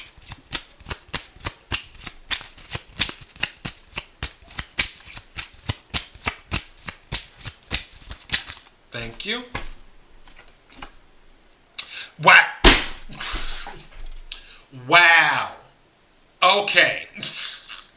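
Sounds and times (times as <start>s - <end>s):
oracle cards being shuffled during a tarot reading: 0.0s - 11.0s
speech: 9.0s - 9.6s, 12.2s - 12.5s, 14.7s - 15.6s, 16.5s - 17.3s.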